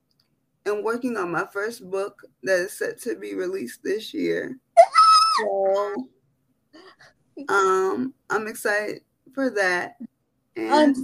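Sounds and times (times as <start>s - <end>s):
speech: 0.7s - 6.2s, 6.8s - 11.0s
person screaming: 4.8s - 5.6s.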